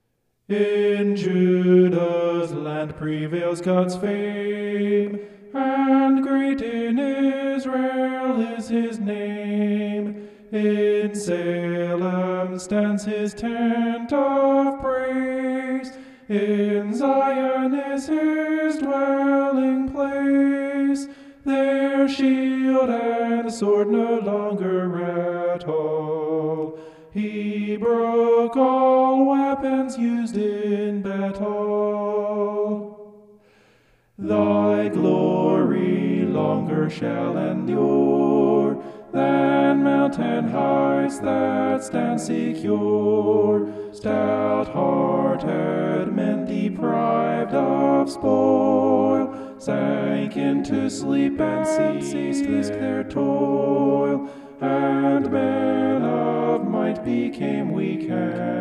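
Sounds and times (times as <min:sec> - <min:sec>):
homophonic vocals: 0:00.5 - 0:33.4, 0:34.1 - 0:58.5.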